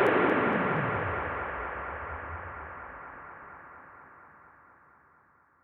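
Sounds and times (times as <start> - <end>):
downlifter effect: 0.1 - 3.3.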